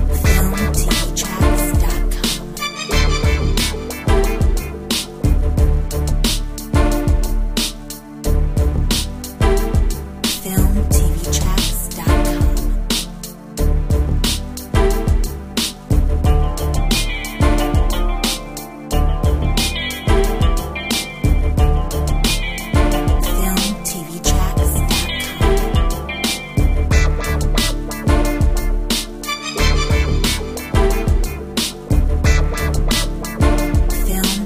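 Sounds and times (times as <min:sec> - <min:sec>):
instrumental hip hop beat: 0:00.0 - 0:34.4.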